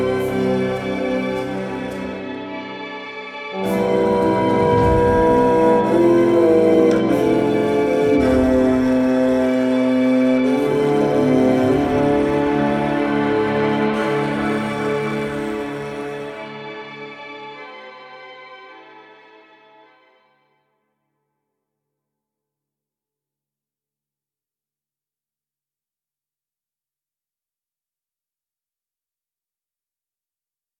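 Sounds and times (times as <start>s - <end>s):
Highlands ambient music: 0.0s - 18.0s.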